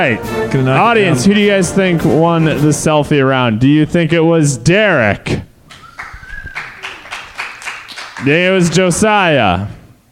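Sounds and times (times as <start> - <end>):
speech: 0.0 - 5.5, 8.2 - 9.8
person clapping hands: 5.7 - 8.8.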